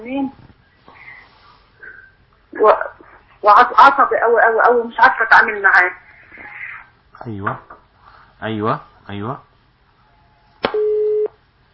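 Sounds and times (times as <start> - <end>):
speech: 2.6 - 6.0, 7.2 - 7.7, 8.4 - 9.5
telephone dial tone after line cut off: 10.2 - 11.4.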